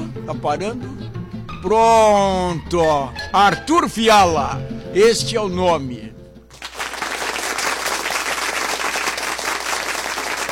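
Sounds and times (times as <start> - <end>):
speech: 0.3 - 1.0, 1.6 - 6.0
audience applause: 6.5 - 10.5.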